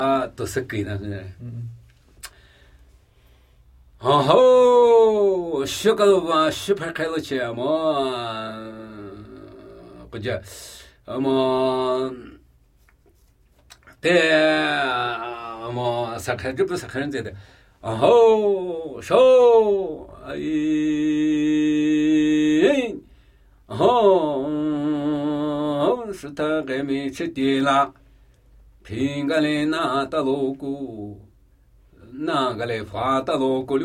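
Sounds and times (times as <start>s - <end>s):
Namuyi Tibetan ritual chanting: 4.0s - 12.5s, 13.9s - 28.0s, 28.8s - 31.3s, 31.9s - 33.8s.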